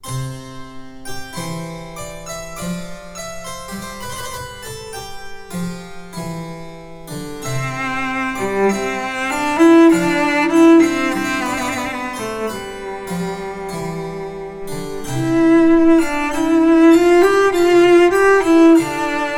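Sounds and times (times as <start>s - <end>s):
cello sonata adagio: 5.5s - 19.3s.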